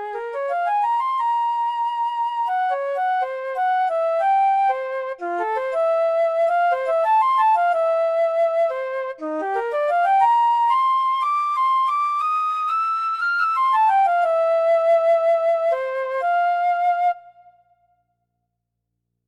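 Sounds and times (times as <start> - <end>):
lyrical flute: 0.0 - 17.9.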